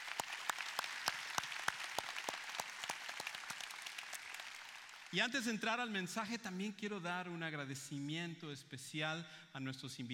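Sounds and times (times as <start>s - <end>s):
audience applauding: 0.0s - 5.2s
speech: 5.1s - 10.1s.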